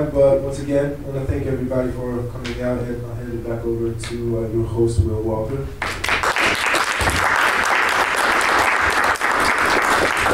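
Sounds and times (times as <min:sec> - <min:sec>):
speech: 0:00.0 - 0:06.1
audience applause: 0:05.8 - 0:10.3.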